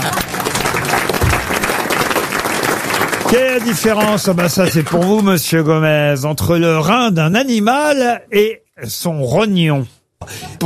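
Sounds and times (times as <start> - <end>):
audience applause: 0.0 - 5.4
speech: 3.3 - 10.6.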